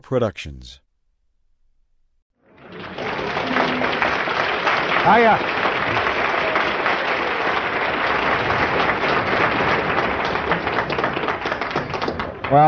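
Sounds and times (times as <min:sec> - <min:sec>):
speech: 0:00.0 - 0:00.8, 0:05.0 - 0:05.7
audience applause: 0:02.5 - 0:12.6.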